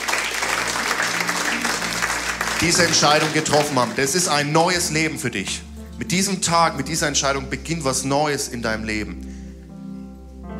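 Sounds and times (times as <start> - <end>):
audience applause: 0.0 - 4.5
speech: 2.6 - 9.3.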